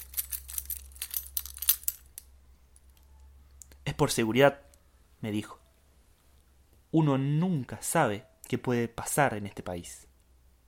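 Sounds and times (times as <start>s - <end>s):
keys jingling while unlocking a heavy barred gate: 0.0s - 3.0s
speech: 3.9s - 5.6s, 6.9s - 10.1s.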